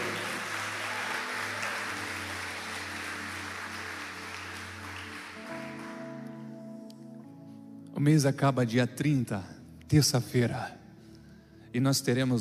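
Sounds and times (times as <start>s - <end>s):
audience applauding: 0.0s - 6.4s
speech: 8.0s - 10.8s, 11.7s - 12.3s.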